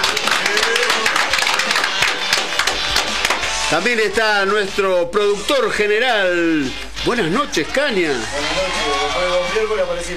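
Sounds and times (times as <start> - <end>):
applause: 0.0 - 3.7
speech: 3.7 - 10.1.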